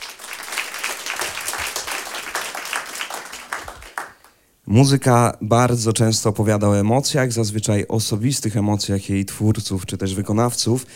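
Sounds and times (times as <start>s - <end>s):
audience applause at a concert: 0.0s - 4.3s
speech: 4.7s - 10.9s.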